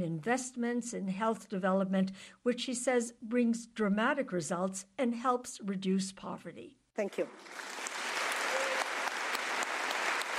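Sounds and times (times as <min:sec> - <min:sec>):
speech: 0:00.0 - 0:07.9
rousing applause after a speech: 0:07.4 - 0:10.3.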